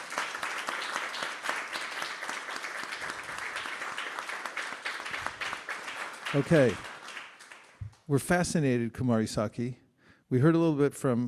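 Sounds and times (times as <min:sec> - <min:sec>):
audience applause: 0:00.0 - 0:07.8
speech: 0:06.3 - 0:06.9, 0:08.1 - 0:11.2.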